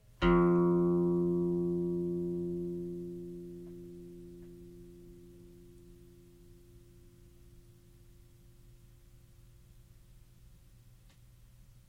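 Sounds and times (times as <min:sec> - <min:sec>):
single plucked open string ringing: 0:00.0 - 0:07.6.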